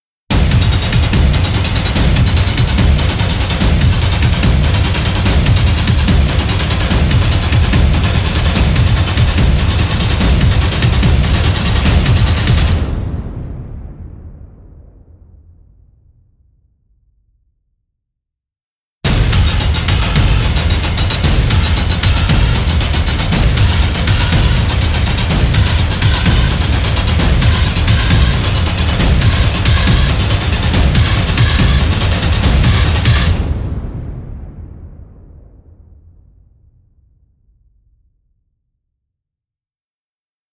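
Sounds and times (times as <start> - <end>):
building war metal music: 0.3 - 12.8, 19.1 - 33.4.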